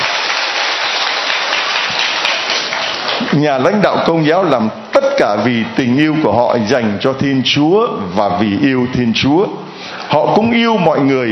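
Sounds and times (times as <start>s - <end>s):
audience applause: 0.0s - 3.6s
speech: 3.3s - 11.2s.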